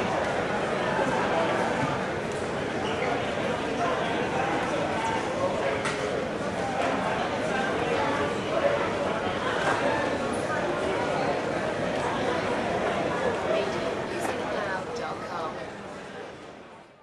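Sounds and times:
mall crowd walla: 0.0s - 17.0s.

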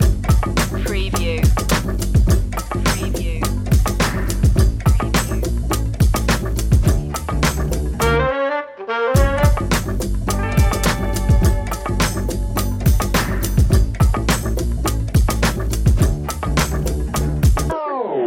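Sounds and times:
comical detective music loop: 0.0s - 8.4s, 9.1s - 17.7s.

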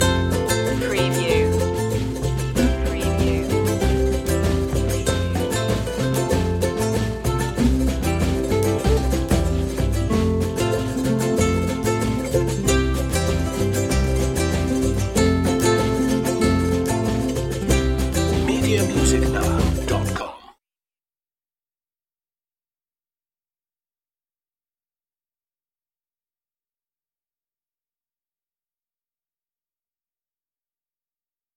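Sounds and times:
Latin carnavalito music: 0.0s - 20.2s.

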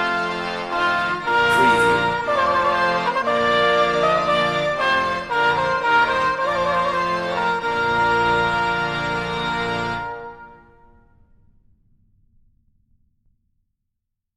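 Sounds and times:
trumpet playing a voluntary: 0.9s - 10.6s.

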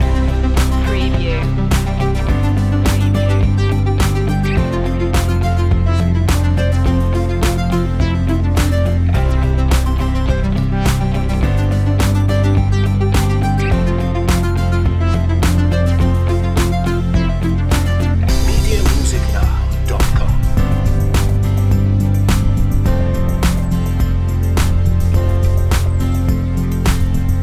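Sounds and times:
motivational song: 0.0s - 27.4s.

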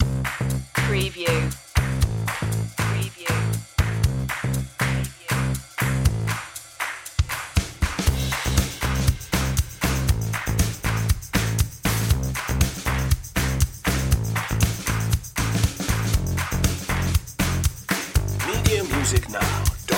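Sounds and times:
happy drum and bass music: 0.0s - 19.9s.

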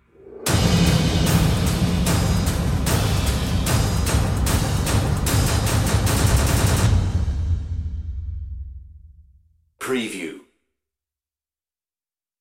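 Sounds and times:
percussion: 0.1s - 8.5s.

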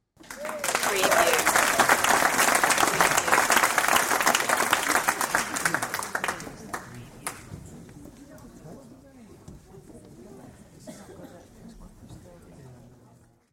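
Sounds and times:
audience applause: 0.2s - 7.5s.

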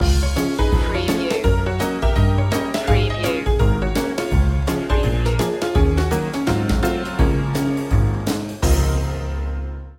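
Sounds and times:
ragtime promenade music: 0.0s - 9.8s.

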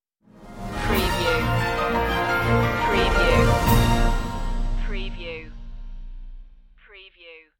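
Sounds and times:
news stinger: 0.6s - 6.8s.

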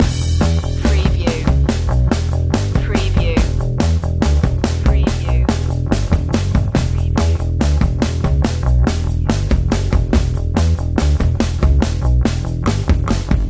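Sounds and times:
hippie music loop: 0.0s - 13.4s.

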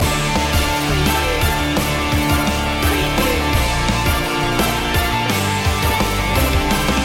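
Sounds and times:
8-bit rocktronic loop: 0.0s - 7.0s.

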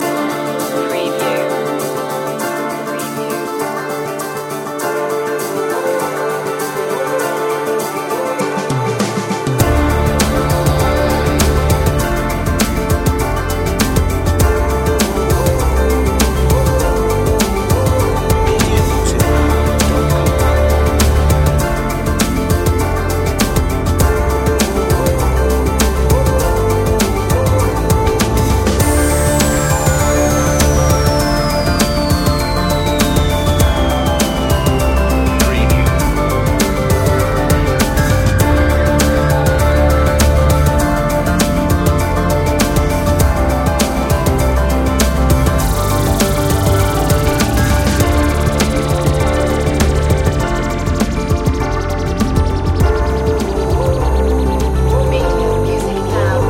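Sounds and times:
tribal trip hop music: 0.0s - 56.4s.

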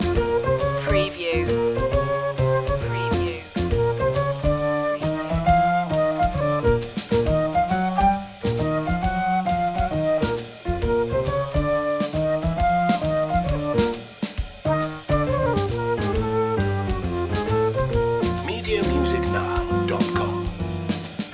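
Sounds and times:
apple blues loop: 0.0s - 21.3s.

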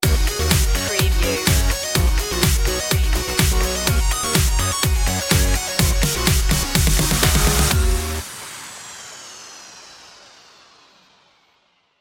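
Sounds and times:
music stinger: 0.0s - 8.7s.

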